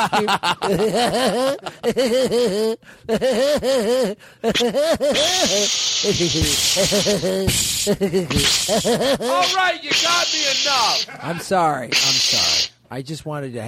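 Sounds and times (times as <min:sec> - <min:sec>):
laughter: 0:00.0 - 0:09.6
speech: 0:00.0 - 0:13.6
person yelping and groaning: 0:03.1 - 0:11.3, 0:11.9 - 0:12.7
seltzer water spraying: 0:05.2 - 0:08.8, 0:09.4 - 0:11.1, 0:11.9 - 0:12.7.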